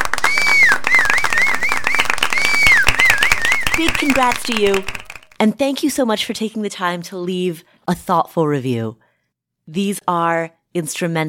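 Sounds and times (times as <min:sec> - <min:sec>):
loud dense round of applause: 0:00.0 - 0:05.4
shrill rising and falling whistles: 0:00.0 - 0:05.4
speech: 0:04.0 - 0:09.0, 0:09.7 - 0:11.2.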